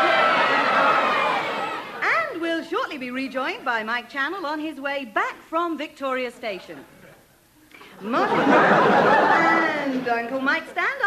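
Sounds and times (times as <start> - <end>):
laughter: 0.0 - 2.0, 8.0 - 10.9
studio audience of kids cheering: 0.0 - 2.0
speech: 3.0 - 7.0, 8.0 - 11.0.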